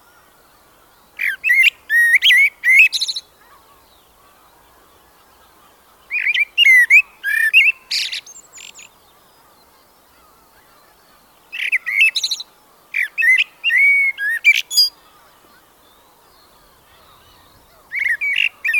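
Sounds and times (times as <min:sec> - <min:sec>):
blackbird singing: 0:01.1 - 0:18.7.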